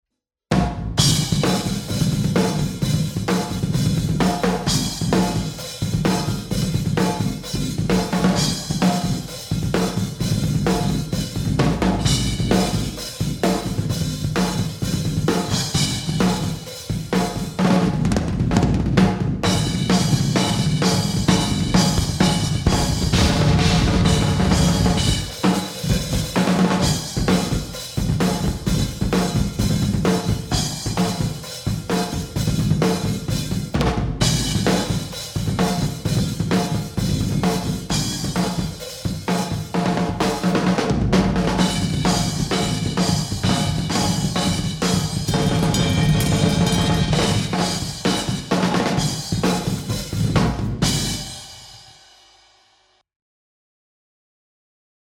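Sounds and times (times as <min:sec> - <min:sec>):
drums: 0:00.5 - 0:52.8.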